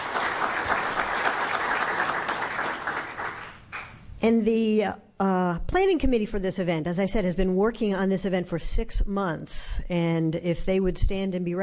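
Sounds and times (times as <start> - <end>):
audience applause: 0.0 - 4.0
speech: 4.2 - 11.6.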